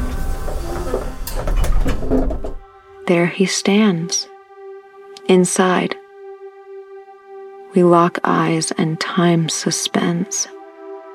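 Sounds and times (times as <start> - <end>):
clunks and scrapes: 0.0 - 2.7
door creaking open: 0.0 - 2.7
steady mechanical rumble: 0.0 - 2.7
speech: 3.1 - 4.3, 5.3 - 6.0, 7.7 - 10.6.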